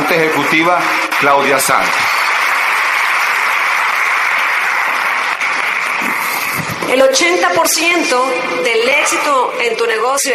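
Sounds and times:
applause: 0.0s - 7.7s
speech: 0.2s - 2.2s, 6.9s - 10.3s.

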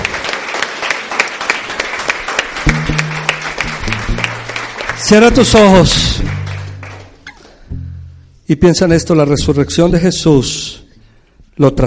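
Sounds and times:
audience applause: 0.0s - 7.4s
speech: 5.1s - 6.4s, 8.5s - 10.8s, 11.6s - 11.8s.

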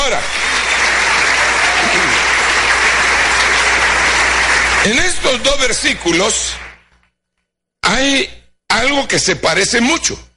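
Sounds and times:
loud audience applause: 0.0s - 6.9s
speech: 4.8s - 6.6s, 7.9s - 10.3s.

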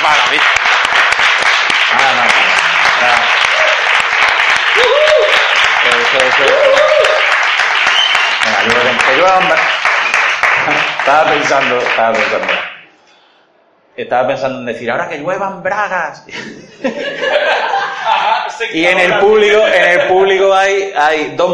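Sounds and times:
large audience applause: 0.0s - 12.8s
scattered cheers and shouting voices: 3.0s - 4.0s, 4.7s - 7.3s
speech: 11.1s - 12.7s, 14.0s - 21.5s
laughter: 16.3s - 20.3s.

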